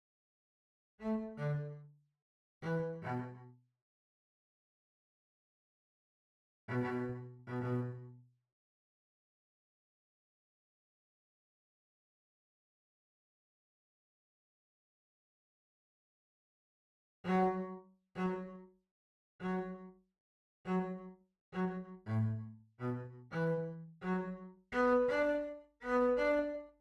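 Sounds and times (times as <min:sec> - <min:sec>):
cello: 0:01.0 - 0:02.0, 0:02.6 - 0:03.6, 0:06.7 - 0:08.3, 0:17.2 - 0:18.8, 0:19.4 - 0:20.0, 0:20.6 - 0:26.7.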